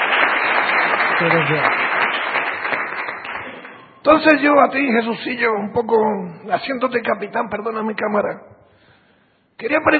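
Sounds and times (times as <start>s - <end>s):
audience applause: 0.0s - 3.8s
speech: 1.2s - 1.8s, 4.0s - 8.5s, 9.6s - 9.9s.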